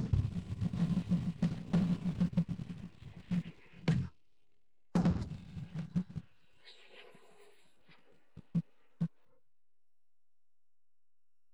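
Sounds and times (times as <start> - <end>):
drums: 0.0 - 4.2, 5.0 - 6.3.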